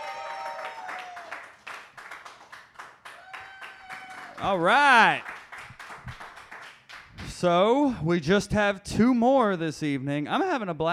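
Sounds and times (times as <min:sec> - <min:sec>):
audience applause: 0:00.0 - 0:07.0
speech: 0:04.4 - 0:05.3, 0:07.4 - 0:10.9.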